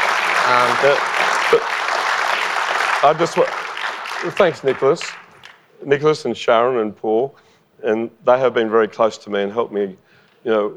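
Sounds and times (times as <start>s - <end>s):
audience applause at a live mining-investor event: 0.0s - 5.6s
speech: 0.5s - 1.8s, 3.0s - 3.6s, 4.2s - 5.2s, 5.8s - 10.7s.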